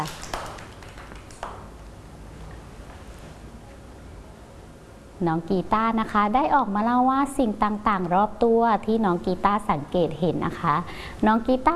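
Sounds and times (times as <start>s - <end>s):
children clapping: 0.0s - 1.7s
speech: 5.2s - 11.7s.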